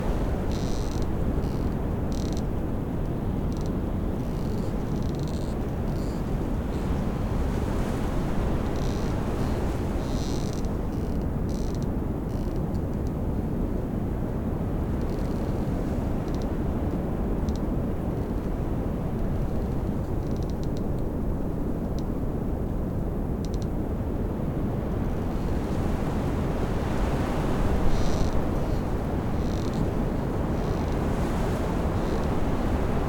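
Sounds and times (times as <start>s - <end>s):
Bora wind: 0.0s - 33.0s
tree branches squeaking in the wind: 0.2s - 2.5s, 3.5s - 6.9s, 8.5s - 12.6s, 27.1s - 33.0s.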